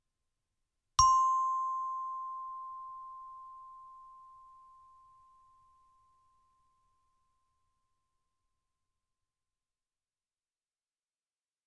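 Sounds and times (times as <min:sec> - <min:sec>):
chime bar note C: 0:01.0 - 0:04.1.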